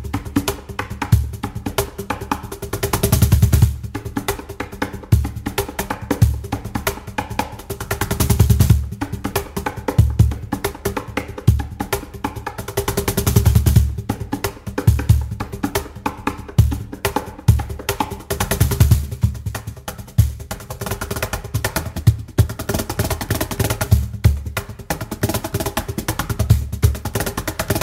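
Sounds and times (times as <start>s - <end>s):
cajon solo: 0.0s - 27.8s.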